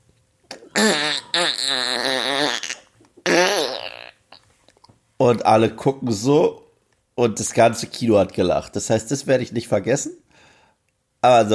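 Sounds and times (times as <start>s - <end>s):
voice imitating a fart: 0.5s - 4.5s
speech: 5.3s - 6.6s, 7.2s - 10.2s, 11.2s - 11.5s.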